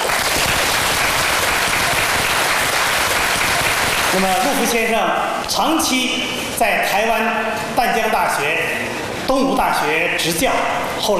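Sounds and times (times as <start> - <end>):
warm audience applause: 0.0 - 4.6
speech: 4.1 - 11.1.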